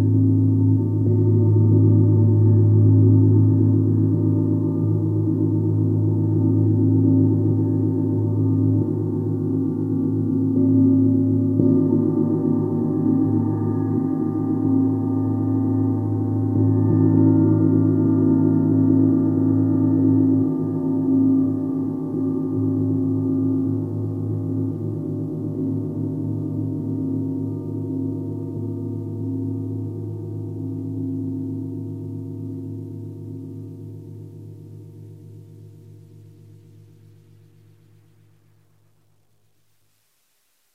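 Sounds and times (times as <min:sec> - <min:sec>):
gong: 0:00.0 - 0:38.4.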